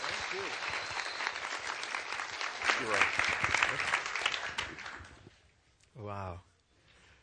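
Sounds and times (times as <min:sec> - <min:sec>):
audience applause welcoming a guest speaker at a morning session: 0:00.0 - 0:05.2
speech: 0:02.8 - 0:03.9.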